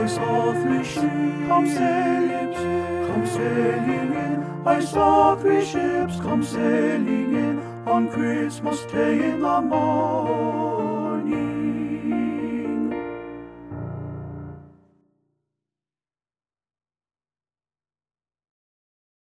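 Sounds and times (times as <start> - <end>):
tenor bass choir singing a holiday carol: 0.0 - 13.5.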